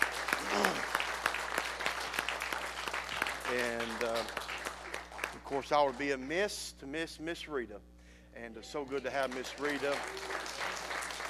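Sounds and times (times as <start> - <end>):
audience applause: 0.0 - 6.2, 8.8 - 11.2
speech: 5.5 - 10.6.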